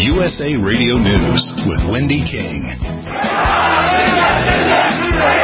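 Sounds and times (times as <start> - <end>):
speech: 0.2 - 5.4
crowd of mourners shouting slogans in Baghdad: 3.1 - 5.4.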